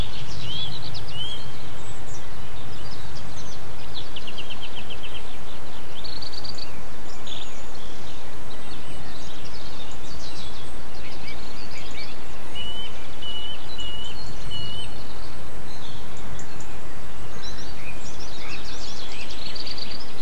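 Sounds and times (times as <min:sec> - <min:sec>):
short rising whistled birdsong: 0:00.0 - 0:20.2.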